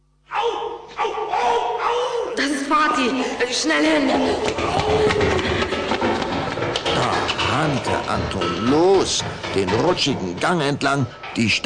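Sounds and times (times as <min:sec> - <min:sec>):
person screaming: 0:00.3 - 0:02.6, 0:04.6 - 0:05.4
laughter: 0:01.0 - 0:07.4
speech: 0:02.4 - 0:05.7, 0:07.0 - 0:11.6.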